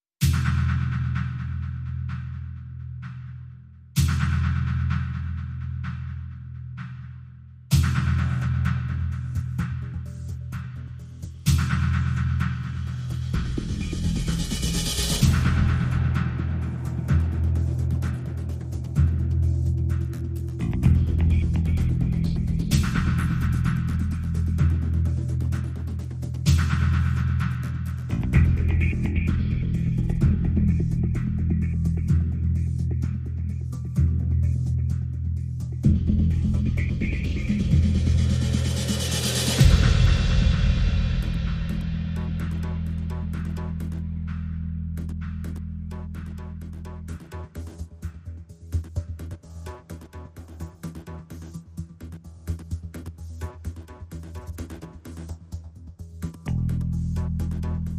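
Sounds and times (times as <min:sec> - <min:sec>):
percussion and pulses: 0:00.2 - 0:57.9.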